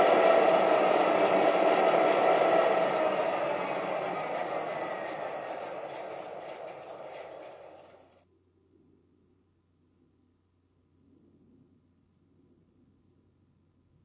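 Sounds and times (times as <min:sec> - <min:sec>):
trains: 0:00.0 - 0:08.2.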